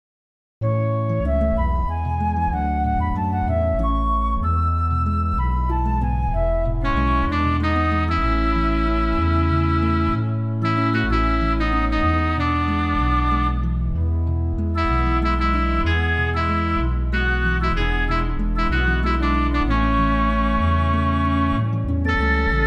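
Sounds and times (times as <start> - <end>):
instrumental music: 0.6 - 22.6.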